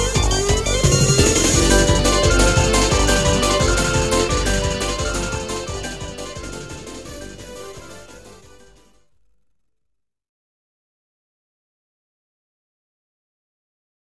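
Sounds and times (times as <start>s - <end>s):
techno music: 0.0s - 9.0s.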